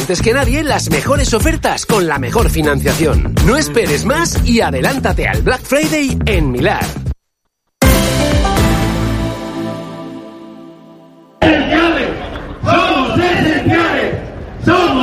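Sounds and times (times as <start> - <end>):
speech: 0.1 - 7.0
sustained musical chord: 7.8 - 11.4
protest crowd of bakers and pastry makers chanting in Valencia: 11.4 - 15.0.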